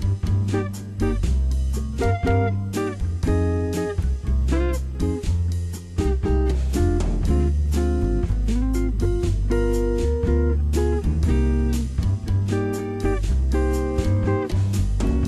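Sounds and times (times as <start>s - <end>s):
bossa nova backing track: 0.0s - 15.2s.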